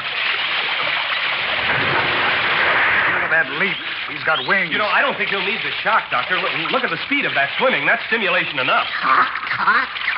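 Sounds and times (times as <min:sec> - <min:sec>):
water rushing through an opened sluice gate into a pool: 0:00.0 - 0:10.1
speech: 0:03.4 - 0:10.1.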